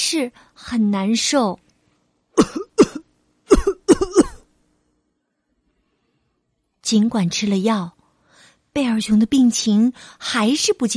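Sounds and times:
speech: 0.1 - 1.6, 2.4 - 2.6, 6.9 - 8.0, 8.8 - 10.9
coughing: 2.4 - 4.5.

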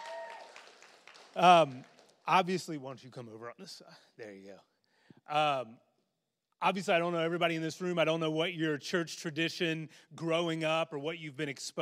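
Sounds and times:
audience clapping for new members: 0.0 - 2.2
speech: 1.4 - 4.7, 5.3 - 5.9, 6.6 - 11.7.

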